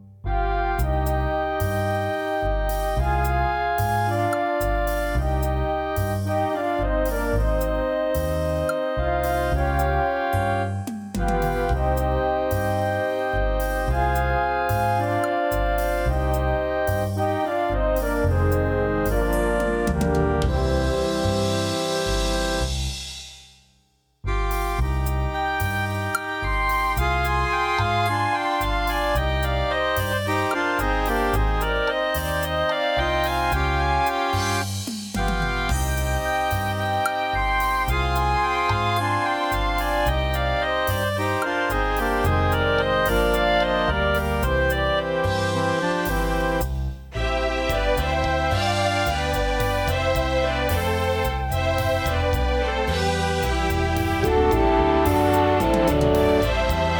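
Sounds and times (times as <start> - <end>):
orchestra: 0.3 - 23.0, 24.3 - 56.9.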